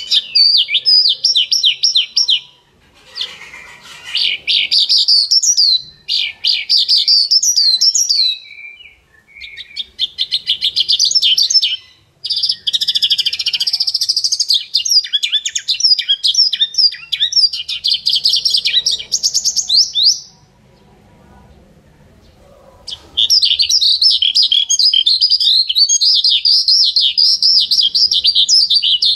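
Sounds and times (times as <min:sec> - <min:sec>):
bird song: 0:00.0 - 0:29.1.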